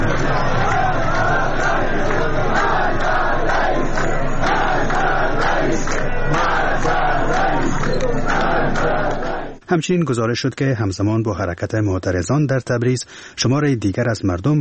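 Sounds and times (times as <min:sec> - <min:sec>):
crowd of protesters in Tabriz chanting slogans against the president: 0:00.0 - 0:09.6
speech: 0:09.7 - 0:14.5.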